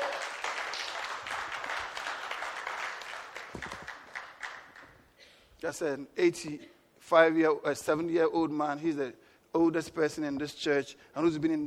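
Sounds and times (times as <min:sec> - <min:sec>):
crowd applauding: 0:00.0 - 0:05.0
speech: 0:05.6 - 0:11.6.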